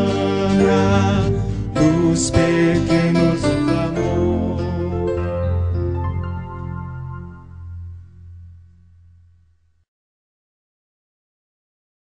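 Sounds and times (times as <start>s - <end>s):
hymn: 0.0s - 5.7s.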